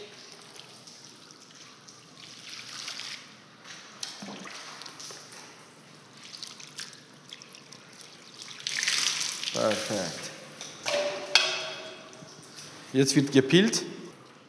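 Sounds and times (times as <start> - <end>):
water being poured over someone: 0.0 - 12.9
speech: 9.7 - 10.2, 12.9 - 13.9.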